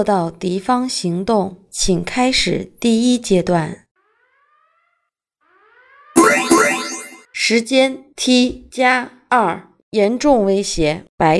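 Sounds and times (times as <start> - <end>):
speech: 0.0 - 3.8, 7.5 - 11.3
alarm signal: 6.2 - 7.2.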